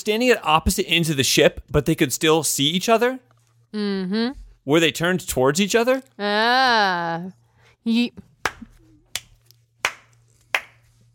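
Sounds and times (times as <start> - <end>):
speech: 0.0 - 8.3
hand clapping: 8.4 - 10.9.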